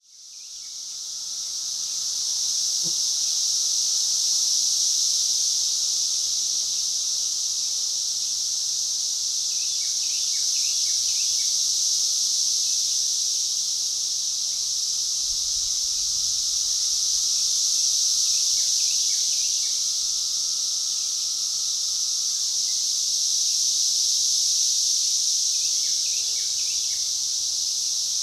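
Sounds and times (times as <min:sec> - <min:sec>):
cicada continuous high hissing whine: 0:00.0 - 0:28.2.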